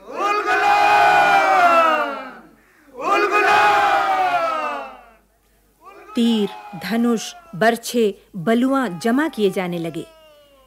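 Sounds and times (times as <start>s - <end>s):
large crowd roaring a revolutionary battle cry: 0.0s - 5.2s, 5.8s - 7.7s
speech: 6.2s - 10.2s.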